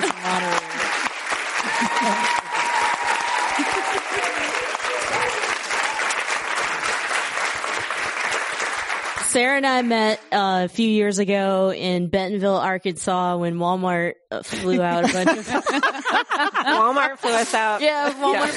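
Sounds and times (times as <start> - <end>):
laughter: 0.0 - 1.0, 1.6 - 2.6, 3.4 - 5.4, 14.5 - 18.5
audience applause: 0.0 - 9.4
speech: 2.0 - 2.4, 9.4 - 18.5.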